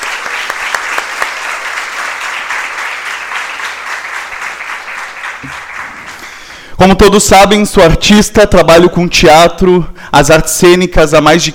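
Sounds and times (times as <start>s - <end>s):
audience applause: 0.0s - 6.7s
speech: 6.8s - 11.5s.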